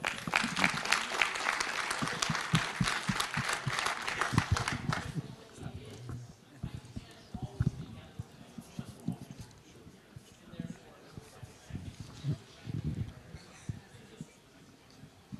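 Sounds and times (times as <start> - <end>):
crowd applauding: 0.0 - 5.2
low murmuring: 0.2 - 15.3.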